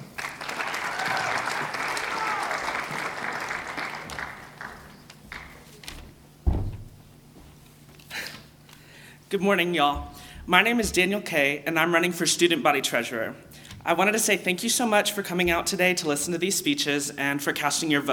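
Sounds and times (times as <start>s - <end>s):
audience applause: 0.0s - 5.7s
speech: 9.3s - 18.1s.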